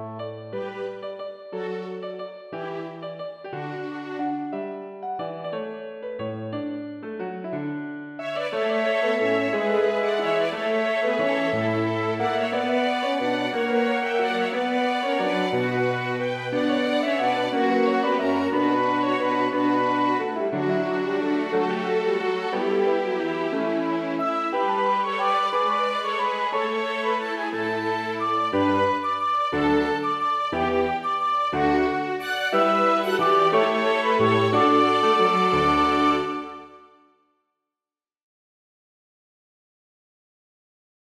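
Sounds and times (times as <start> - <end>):
piano playing a gigue: 0.0 - 37.0
two violins playing a gigue: 8.2 - 36.8.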